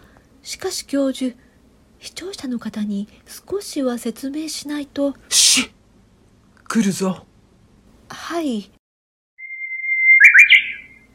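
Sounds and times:
speech: 0:00.4 - 0:01.4, 0:02.0 - 0:05.8, 0:06.7 - 0:07.3, 0:08.1 - 0:08.8
Japanese bush warbler singing: 0:09.4 - 0:11.1.

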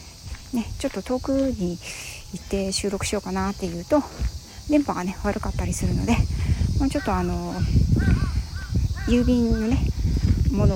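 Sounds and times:
cicadas singing outdoors: 0:00.0 - 0:10.7
speech: 0:00.5 - 0:08.4, 0:09.1 - 0:10.7.

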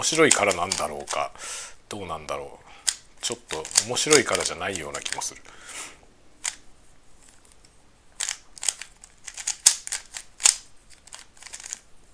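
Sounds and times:
speed cube being turned, clicking: 0:00.0 - 0:01.3, 0:02.8 - 0:05.3, 0:06.4 - 0:06.6, 0:07.3 - 0:11.8
speech: 0:00.0 - 0:02.6, 0:03.2 - 0:05.9.

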